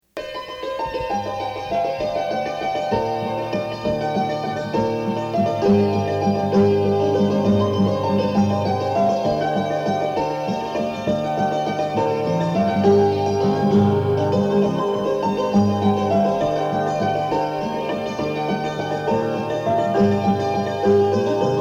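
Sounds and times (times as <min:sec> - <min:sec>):
waltz music: 0:00.1 - 0:21.5.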